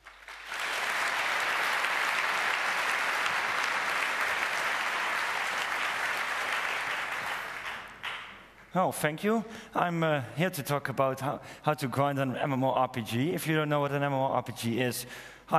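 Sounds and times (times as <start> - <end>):
audience applause: 0.0 - 8.5
speech: 8.7 - 15.5.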